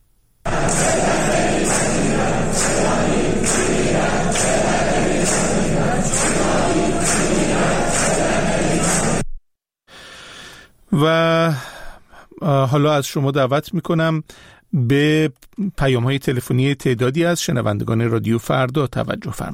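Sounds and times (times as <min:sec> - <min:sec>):
students of the Khajeh Nasir mechanical engineering faculty shouting: 0:00.5 - 0:09.2
speech: 0:12.7 - 0:19.5.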